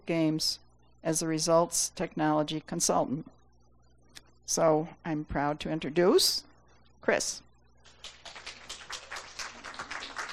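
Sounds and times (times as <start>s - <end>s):
speech: 0.1s - 3.4s, 4.5s - 7.5s
audience applause: 8.0s - 10.3s.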